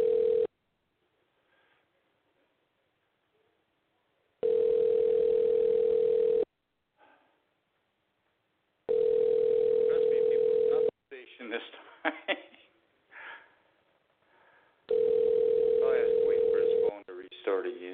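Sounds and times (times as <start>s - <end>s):
telephone ringback tone: 0.0s - 0.5s, 4.4s - 6.5s, 8.9s - 10.9s, 14.9s - 16.9s
person talking: 9.8s - 11.9s, 15.8s - 17.9s.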